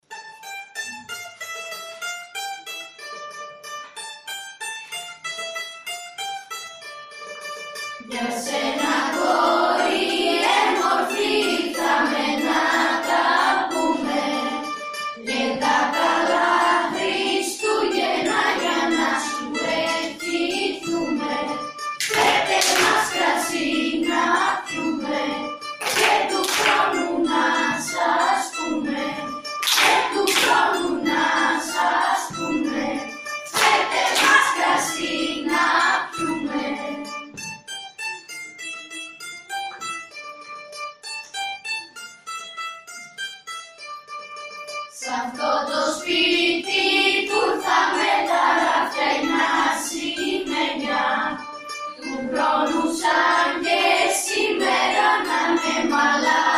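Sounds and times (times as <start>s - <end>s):
Christmas carols from Ikaria: 7.1s - 37.6s, 44.8s - 56.5s.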